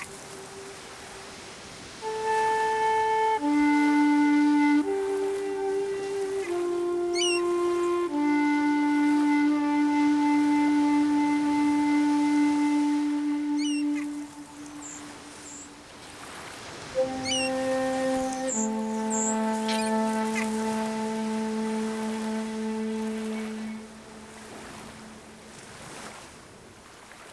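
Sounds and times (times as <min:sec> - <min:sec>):
ocean waves: 0:00.0 - 0:27.3
seagulls calling: 0:02.1 - 0:09.3, 0:12.7 - 0:15.8, 0:16.8 - 0:25.4.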